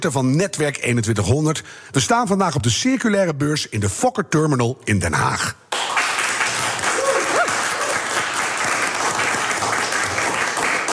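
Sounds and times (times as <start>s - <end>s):
speech: 0.0s - 5.6s
audience applause: 5.7s - 10.9s.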